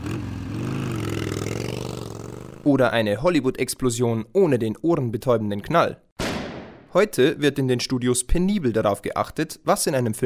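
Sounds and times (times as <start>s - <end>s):
Harley-Davidson motorcycle engine revving: 0.0s - 2.7s
speech: 2.6s - 6.0s, 6.9s - 10.2s.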